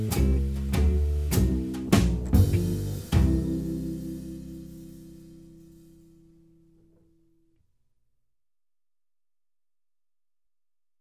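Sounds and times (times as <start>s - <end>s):
blues guitar in C: 0.0s - 5.6s
drums: 0.0s - 7.0s
bass: 0.0s - 7.6s.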